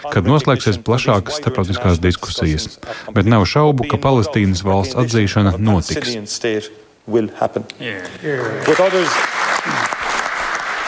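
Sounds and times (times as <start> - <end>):
speech: 0.0 - 9.9
ovation applause in a parliament hall: 8.3 - 10.8.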